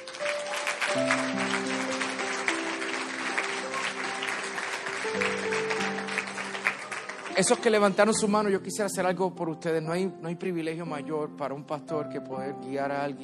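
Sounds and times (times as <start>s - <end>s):
audience applause: 0.0s - 8.2s
speech: 7.4s - 13.2s.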